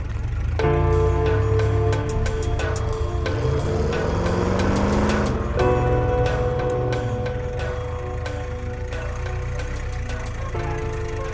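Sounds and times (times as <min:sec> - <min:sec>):
jeeps driving: 0:00.0 - 0:11.3.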